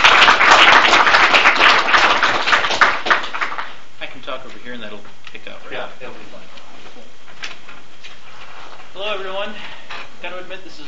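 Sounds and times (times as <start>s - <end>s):
audience applause welcoming a speaker to a meeting: 0.0s - 3.8s.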